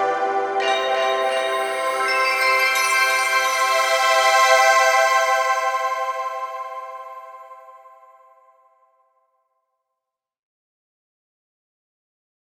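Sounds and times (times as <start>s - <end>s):
synth bells and chimes: 0.0s - 8.1s.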